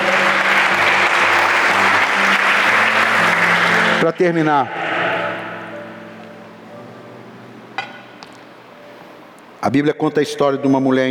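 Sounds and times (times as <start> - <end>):
audience applauding: 0.0 - 4.4
speech: 4.0 - 4.8, 9.7 - 11.0.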